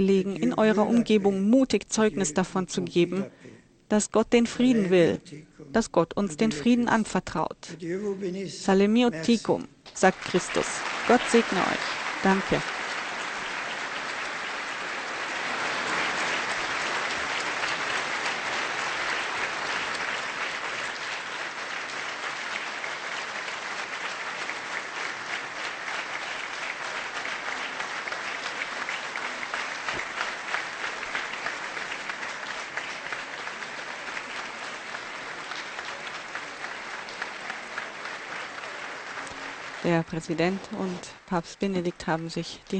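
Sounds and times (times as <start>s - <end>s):
speech: 0.0s - 12.8s, 40.0s - 42.7s
audience applause: 9.9s - 42.3s.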